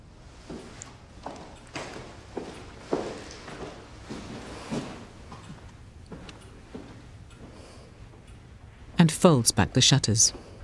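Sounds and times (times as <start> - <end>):
quiet footsteps of a woman crossing a room toward a window: 0.3 - 9.0
speech: 9.0 - 10.5.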